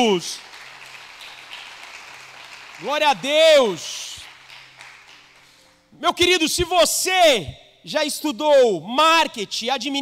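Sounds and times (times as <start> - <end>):
speech: 0.0 - 0.5, 2.8 - 3.9, 6.0 - 10.0
audience applauding: 0.3 - 5.6.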